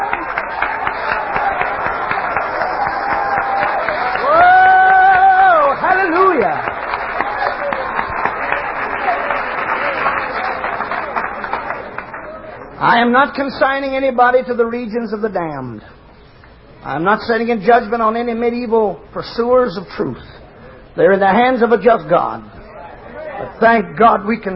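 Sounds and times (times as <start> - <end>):
audience clapping hands: 0.0 - 12.8
speech: 13.0 - 16.0, 16.8 - 20.3, 21.0 - 22.6, 23.5 - 24.5.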